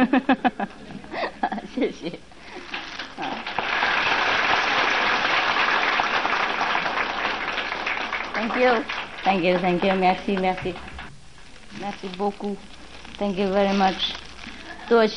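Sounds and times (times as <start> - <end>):
speech: 0.0 - 0.6, 8.6 - 10.9, 11.9 - 14.1, 14.9 - 15.1
crowd applause: 2.7 - 11.1.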